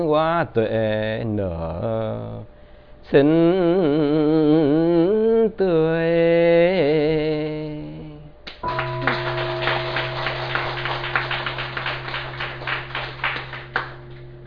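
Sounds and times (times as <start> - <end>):
speech: 0.0 - 7.2
mindfulness bell ringing: 8.6 - 14.4.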